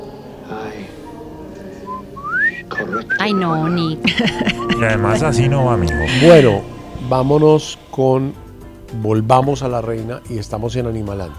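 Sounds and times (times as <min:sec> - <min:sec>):
laughter: 0:00.0 - 0:07.5
murmur of voices: 0:00.0 - 0:11.3
speech: 0:00.5 - 0:01.0, 0:02.7 - 0:11.3
person whistling a short melodic phrase: 0:01.9 - 0:06.7.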